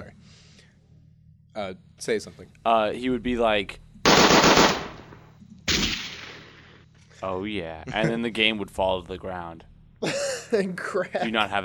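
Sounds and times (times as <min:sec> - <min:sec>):
speech: 0:01.6 - 0:03.8, 0:07.2 - 0:11.6
gun sound effect blasts: 0:04.1 - 0:06.7.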